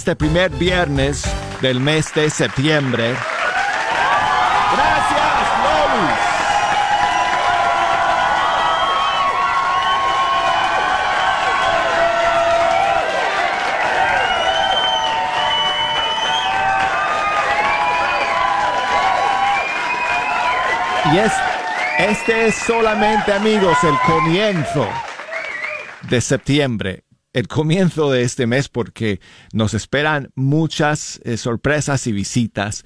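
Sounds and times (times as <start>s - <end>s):
speech: 0.0s - 3.3s, 21.1s - 25.1s, 26.0s - 32.8s
crowd behind a glass window cheering, shouting and applauding: 0.7s - 26.3s.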